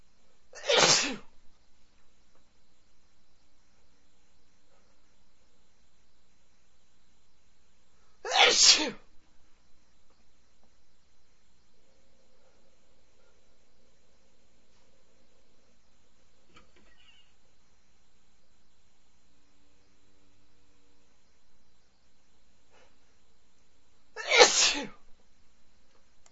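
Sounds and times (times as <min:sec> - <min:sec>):
man sneezing big sneezes: 0:00.6 - 0:01.3, 0:08.3 - 0:09.1, 0:24.2 - 0:25.0.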